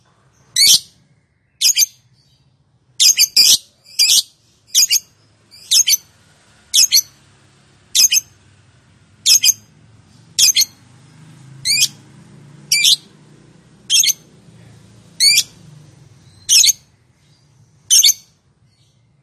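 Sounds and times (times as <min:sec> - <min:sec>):
lovebird giving sharp high chirps in konslet calling style: 0:00.3 - 0:06.1, 0:06.7 - 0:07.2, 0:07.9 - 0:08.4, 0:09.2 - 0:10.8, 0:11.6 - 0:12.0, 0:12.7 - 0:13.1, 0:13.9 - 0:14.3, 0:15.2 - 0:19.1.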